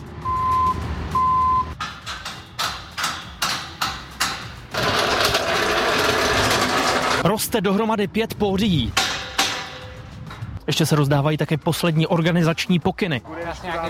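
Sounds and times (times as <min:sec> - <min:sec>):
construction site noise: 0:00.0 - 0:07.4, 0:08.8 - 0:10.7
reversing beeps: 0:00.2 - 0:01.7
speech: 0:07.3 - 0:09.0, 0:10.8 - 0:13.8.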